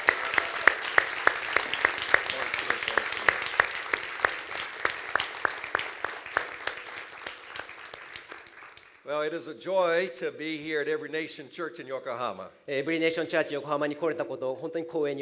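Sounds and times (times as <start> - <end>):
audience applause: 0.0 - 9.1
speech: 9.1 - 15.2.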